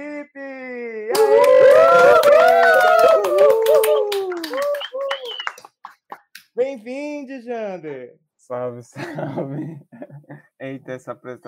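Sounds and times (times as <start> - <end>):
audience round of applause: 1.2 - 6.0
speech: 6.7 - 11.4.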